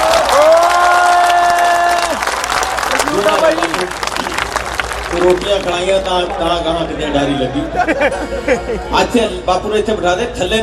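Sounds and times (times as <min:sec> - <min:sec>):
loud audience applause at a gathering: 0:00.0 - 0:06.7
speech: 0:05.6 - 0:10.6
laughter: 0:07.5 - 0:08.9.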